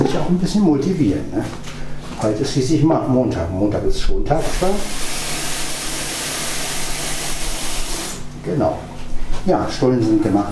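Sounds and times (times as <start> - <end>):
speech: 0.2 - 5.2, 8.4 - 10.5
coffee machine brewing coffee: 4.5 - 8.2.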